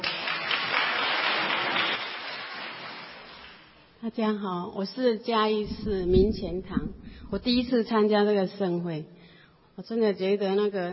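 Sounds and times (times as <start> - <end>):
audience applause: 0.0 - 3.6
speech: 4.0 - 9.2, 9.8 - 10.9.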